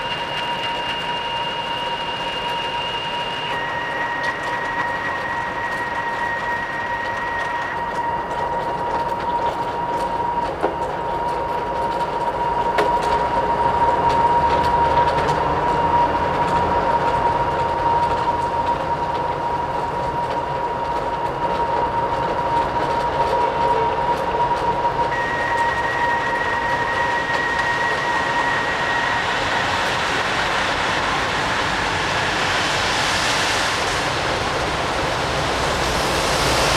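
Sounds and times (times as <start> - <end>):
rain: 0.0 - 36.7.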